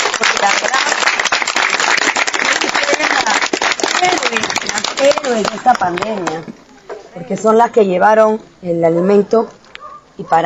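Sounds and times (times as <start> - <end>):
audience applause: 0.0 - 6.1
speech: 4.3 - 9.6, 10.2 - 10.4.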